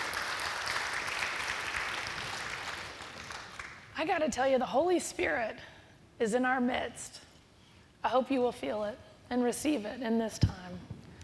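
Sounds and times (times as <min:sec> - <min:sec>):
audience applause: 0:00.0 - 0:03.8
speech: 0:04.0 - 0:07.3, 0:08.0 - 0:10.9.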